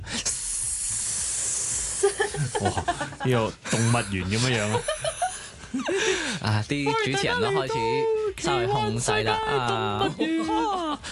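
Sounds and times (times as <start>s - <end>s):
snake hissing: 0.0s - 2.8s
laughter: 2.0s - 6.4s, 9.4s - 11.1s
speech: 2.4s - 5.0s, 5.8s - 11.1s.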